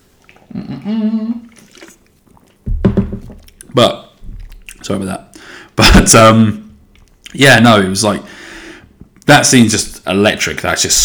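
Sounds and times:
person sipping a drink: 0.0 - 5.8
speech: 0.8 - 1.4, 3.8 - 4.0, 4.9 - 5.3, 6.0 - 6.6, 7.3 - 8.4, 9.3 - 11.0.

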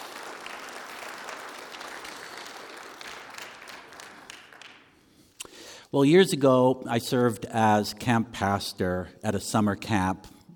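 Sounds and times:
church congregation applause during a sermon: 0.0 - 5.2
speech: 5.9 - 10.4.

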